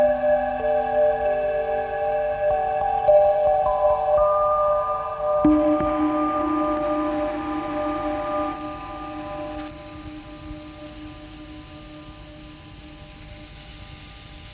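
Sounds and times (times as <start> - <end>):
kalimba: 0.0 - 8.4.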